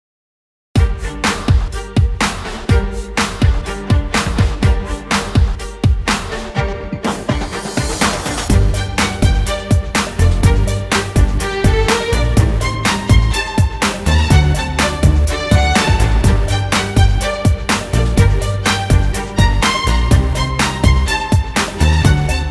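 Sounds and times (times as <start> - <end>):
background music: 0.8 - 22.4.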